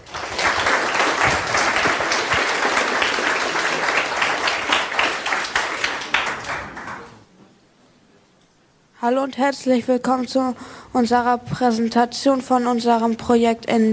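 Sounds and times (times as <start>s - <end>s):
audience applause: 0.0s - 7.2s
speech: 9.1s - 13.9s.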